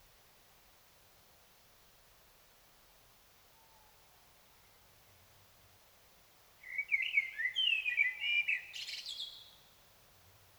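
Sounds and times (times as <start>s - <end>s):
Common blackbird song: 6.6s - 9.8s.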